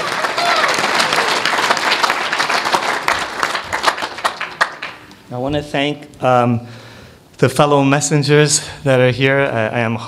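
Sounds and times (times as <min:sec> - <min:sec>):
audience round of applause: 0:00.0 - 0:05.1
speech: 0:05.3 - 0:06.8, 0:07.4 - 0:10.0.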